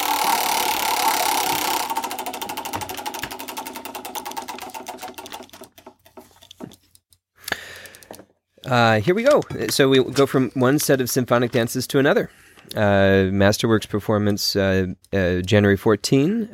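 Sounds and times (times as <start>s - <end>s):
roulette wheel spinning: 0.0s - 6.7s
speech: 8.7s - 16.5s.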